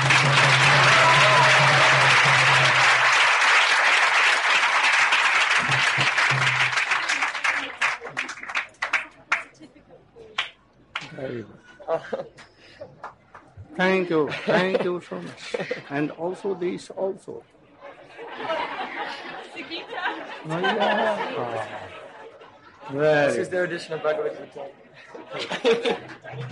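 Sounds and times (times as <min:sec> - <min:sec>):
round of applause: 0:00.0 - 0:09.6
laughter: 0:11.4 - 0:13.0, 0:13.9 - 0:16.2, 0:17.8 - 0:22.9, 0:25.0 - 0:26.5
speech: 0:13.8 - 0:17.6, 0:20.4 - 0:21.9, 0:22.9 - 0:26.5.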